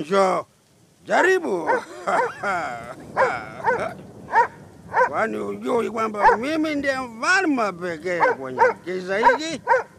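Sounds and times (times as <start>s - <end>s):
speech: 0.0s - 4.4s, 5.1s - 9.9s
dog barking: 1.2s - 2.4s, 3.1s - 5.2s, 6.2s - 6.5s, 8.2s - 9.9s
laughter: 1.7s - 4.0s.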